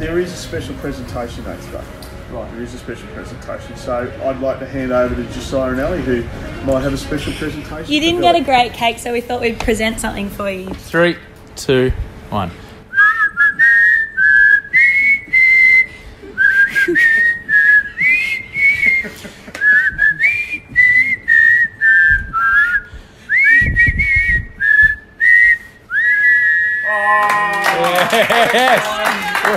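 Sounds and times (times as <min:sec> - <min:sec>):
speech: 0:00.0 - 0:12.6
two people whistling a bright wavering tune: 0:12.9 - 0:26.9
laughter: 0:16.3 - 0:20.2, 0:26.9 - 0:29.5
clapping: 0:19.5 - 0:19.8, 0:27.2 - 0:29.5
noisy cheering: 0:26.8 - 0:29.5.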